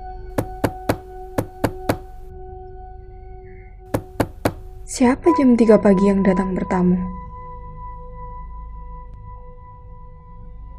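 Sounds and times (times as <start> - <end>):
knocking on a door: 0.4 - 2.2, 4.0 - 4.9
speech: 4.9 - 7.2.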